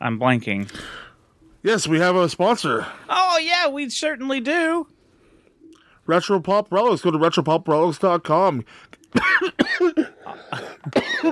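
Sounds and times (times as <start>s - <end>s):
speech: 0.0s - 1.0s, 1.6s - 5.0s, 6.1s - 11.3s
person coughing and choking: 9.1s - 11.3s.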